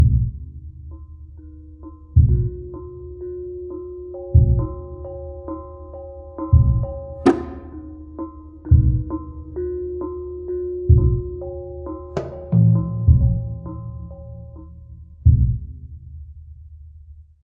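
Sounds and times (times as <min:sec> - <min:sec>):
jungle level music: 0:00.0 - 0:15.8.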